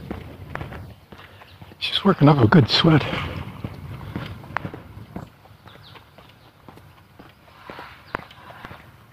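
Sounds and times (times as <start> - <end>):
woman race walking footsteps: 0.0 - 9.1
speech: 1.8 - 3.4.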